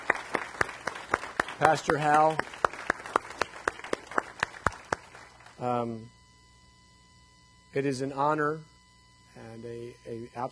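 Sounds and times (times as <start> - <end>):
audience round of applause: 0.0 - 5.5
speech: 1.6 - 2.6, 5.6 - 6.2, 7.7 - 8.7, 9.4 - 10.5.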